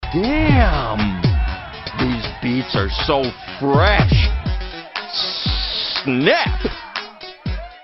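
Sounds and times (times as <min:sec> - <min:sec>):
fresh beats: 0:00.0 - 0:07.1.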